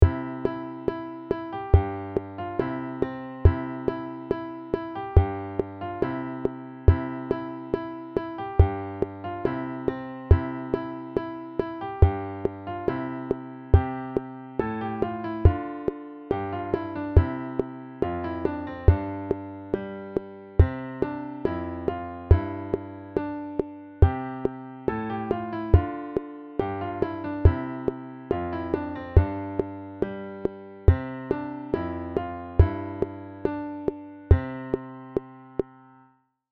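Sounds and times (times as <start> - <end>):
simple bass metronome: 0.0 - 35.7.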